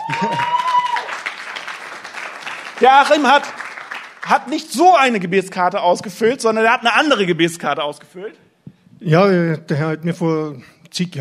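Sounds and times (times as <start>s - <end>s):
audience applause: 0.0s - 5.2s
speech: 0.2s - 0.6s, 2.8s - 3.6s, 4.3s - 11.2s.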